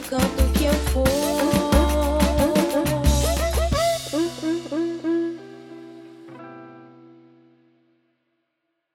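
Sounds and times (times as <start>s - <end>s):
samba music: 0.0s - 6.0s.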